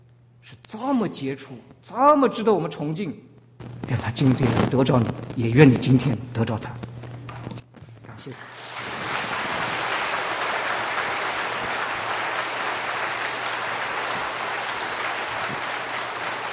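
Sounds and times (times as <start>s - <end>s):
speech: 0.4s - 6.8s
audience applause: 8.2s - 16.5s.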